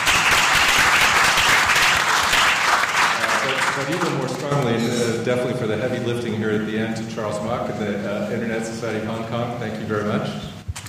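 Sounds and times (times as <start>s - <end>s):
audience applause: 0.0s - 4.8s
speech: 4.6s - 10.5s.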